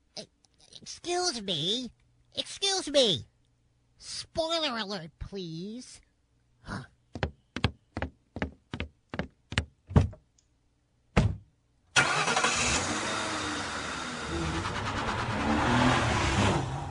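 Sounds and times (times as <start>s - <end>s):
speech: 0.9s - 3.3s, 4.0s - 6.0s
sharp knocks: 7.1s - 10.2s
small car engine speeding down road: 12.0s - 16.9s.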